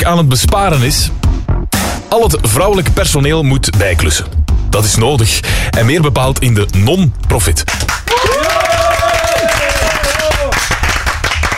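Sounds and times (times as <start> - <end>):
speech: 0.0 - 1.3, 2.1 - 8.0
crowd applauding: 7.7 - 11.5.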